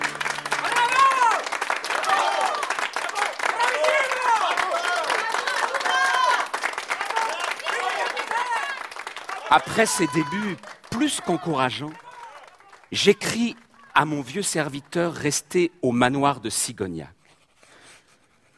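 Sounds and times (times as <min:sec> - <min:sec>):
theatre audience shouting and cheering: 0:00.0 - 0:13.9
theatre audience clapping for a comic actor's performance: 0:00.0 - 0:15.6
speech: 0:09.5 - 0:12.0, 0:12.9 - 0:17.2.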